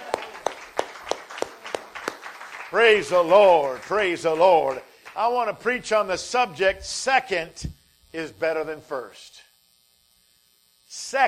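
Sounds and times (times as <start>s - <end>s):
audience clapping hands in praise: 0.0s - 5.2s
speech: 2.7s - 9.4s, 10.9s - 11.2s.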